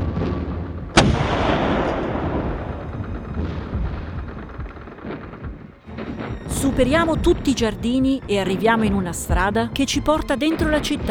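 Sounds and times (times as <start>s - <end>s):
artillery blast during a counterattack: 0.0s - 6.6s
deep rumbling artillery booms: 0.0s - 11.0s
speech: 6.8s - 11.0s.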